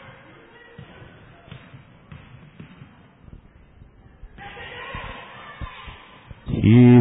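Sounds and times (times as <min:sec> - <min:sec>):
basketball dribbled across half court during a Wildcats game: 0:00.8 - 0:03.0
commentator's play-by-play voice: 0:06.5 - 0:06.9.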